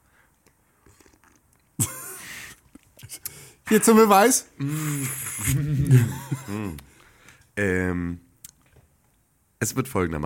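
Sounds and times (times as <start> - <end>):
speech: 3.7 - 6.9, 7.6 - 8.2, 9.6 - 10.2
slurping sip of coffee: 4.7 - 5.7
laughter: 5.4 - 6.8.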